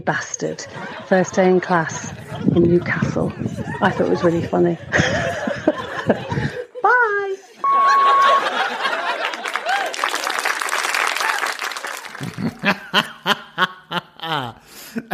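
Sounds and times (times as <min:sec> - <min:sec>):
speech: 0:00.0 - 0:05.3, 0:06.1 - 0:06.5
live audience chuckling and laughing: 0:00.4 - 0:06.8, 0:07.6 - 0:10.3, 0:11.1 - 0:15.1
live audience applauding: 0:07.8 - 0:13.4.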